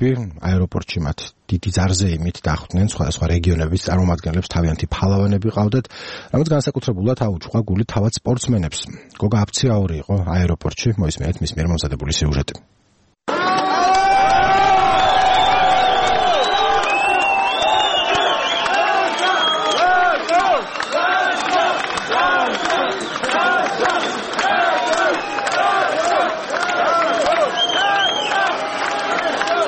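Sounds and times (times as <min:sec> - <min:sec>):
speech: 0:00.0 - 0:13.4
supporters cheering, shouting and whooping for Georgian Olympic athletes at Tbilisi airport: 0:13.3 - 0:29.6.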